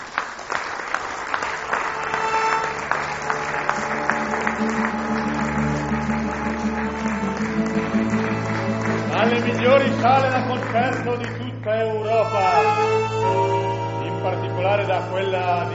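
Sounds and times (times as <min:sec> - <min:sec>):
audience applause: 0:00.0 - 0:11.4
sustained musical tones: 0:01.9 - 0:15.7
speech: 0:09.3 - 0:13.6, 0:14.2 - 0:15.7.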